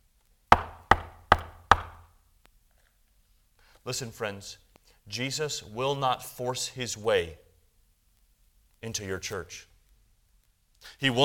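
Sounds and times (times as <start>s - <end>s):
firm knocking on a door: 0.6s - 2.0s
speech: 3.8s - 7.4s, 8.8s - 9.7s, 10.8s - 11.2s.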